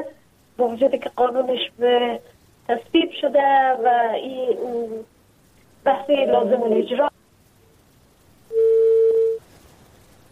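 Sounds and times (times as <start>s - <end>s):
faint hiss: 0.0s - 10.3s
speech: 0.6s - 5.1s, 5.8s - 7.2s
phone line tone after a dropped call: 8.5s - 9.4s.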